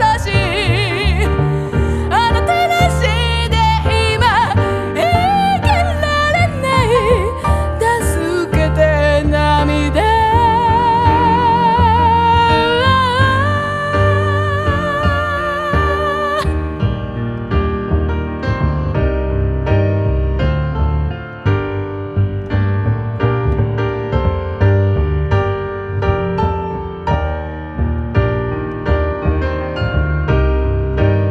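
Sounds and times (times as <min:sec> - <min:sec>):
voice: 0:00.0 - 0:16.6
piano: 0:00.0 - 0:31.2.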